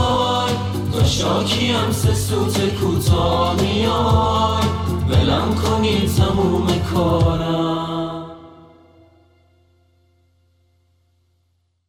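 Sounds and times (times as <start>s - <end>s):
group singing music: 0.0s - 8.8s.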